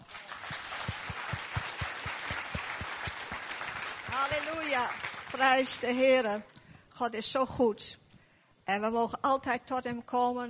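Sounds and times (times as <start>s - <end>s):
loud clapping: 0.0s - 5.8s
speech: 4.2s - 8.0s, 8.7s - 10.4s.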